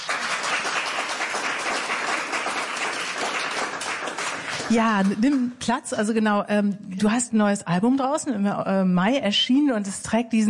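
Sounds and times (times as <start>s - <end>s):
audience applause: 0.0s - 5.5s
speech: 4.7s - 10.4s.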